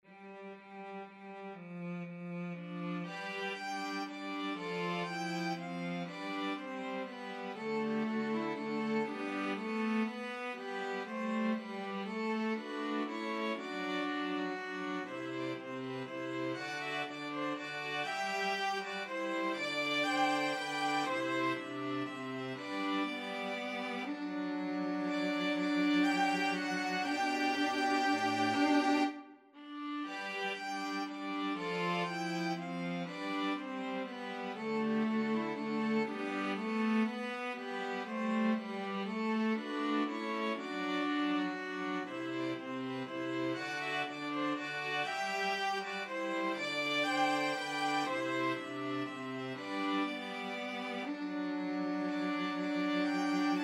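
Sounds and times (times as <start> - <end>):
string quartet playing: 0.0 - 53.6.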